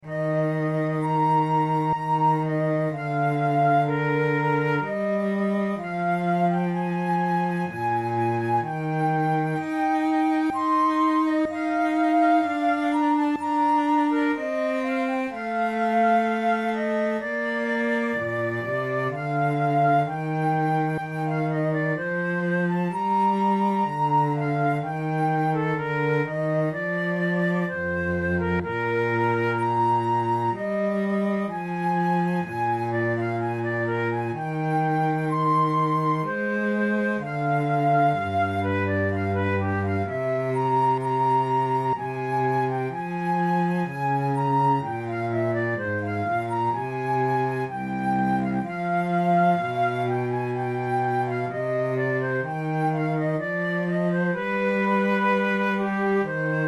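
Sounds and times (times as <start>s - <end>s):
adagio flute piece: 0.0s - 56.6s.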